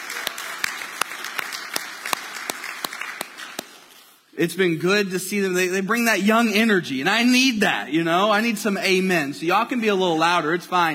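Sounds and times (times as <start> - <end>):
church congregation applauding its students: 0.0 - 4.1
speech: 4.4 - 10.9.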